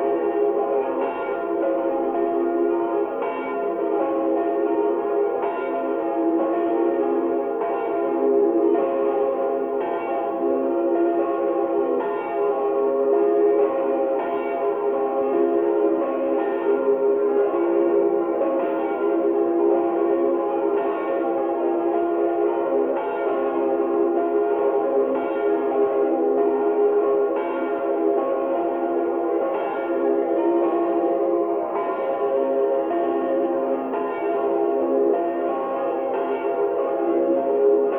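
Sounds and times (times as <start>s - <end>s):
church bells ringing in Eriskirch Mariabrunn: 0.0s - 37.9s.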